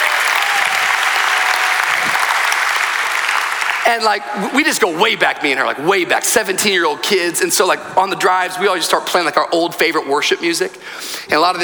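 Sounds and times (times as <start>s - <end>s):
church audience cheering and applauding for a pastor's wife: 0.0s - 4.3s
speech: 3.9s - 11.6s.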